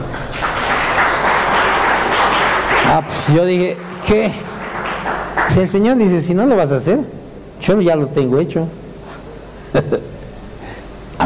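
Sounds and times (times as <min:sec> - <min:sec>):
applause: 0:00.0 - 0:06.5
speech: 0:03.0 - 0:04.5, 0:05.4 - 0:08.8.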